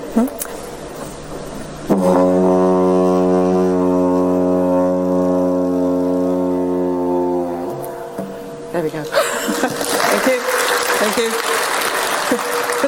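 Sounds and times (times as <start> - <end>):
speech: 0.2 - 0.4
didgeridoo being played on stage: 1.7 - 8.8
laughter: 9.1 - 10.9, 11.9 - 12.8.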